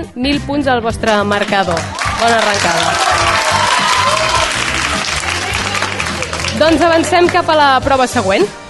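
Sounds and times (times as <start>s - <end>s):
speech: 0.0s - 3.3s, 6.6s - 8.6s
crowd applause: 1.7s - 7.5s.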